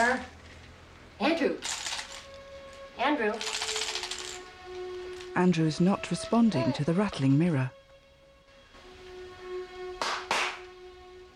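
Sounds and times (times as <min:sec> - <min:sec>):
speech: 0:01.2 - 0:01.8, 0:03.0 - 0:03.6, 0:05.4 - 0:07.8
hand claps: 0:10.0 - 0:10.7.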